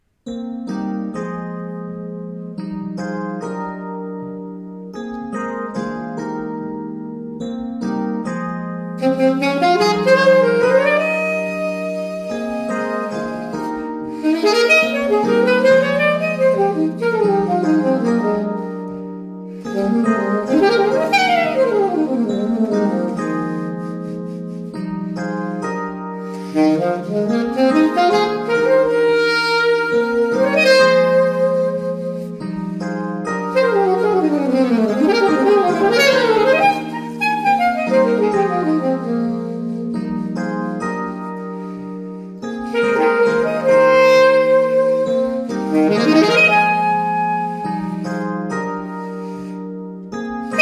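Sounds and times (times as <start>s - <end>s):
solo waltz: 0.0s - 50.5s.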